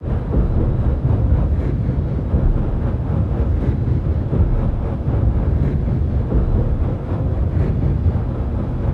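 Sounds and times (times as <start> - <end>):
submarine engines: 0.0 - 8.9.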